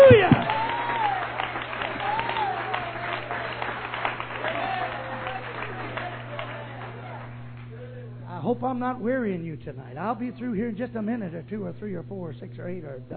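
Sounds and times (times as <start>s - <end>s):
audience clapping hands: 0.0s - 7.9s
speech: 8.6s - 13.1s.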